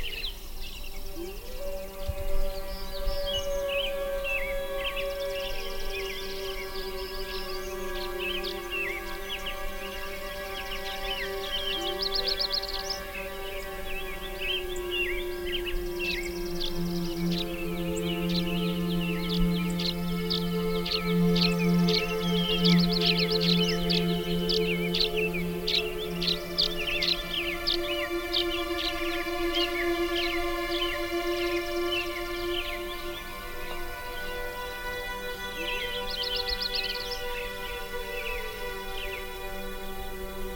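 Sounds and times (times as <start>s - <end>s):
birds chirping and trilling: 0.0s - 40.5s
slow stretched music played backwards: 0.0s - 40.5s.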